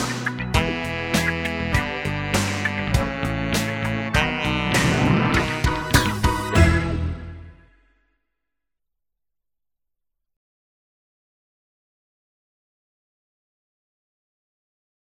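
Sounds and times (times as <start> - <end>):
instrumental music: 0.1 - 7.9.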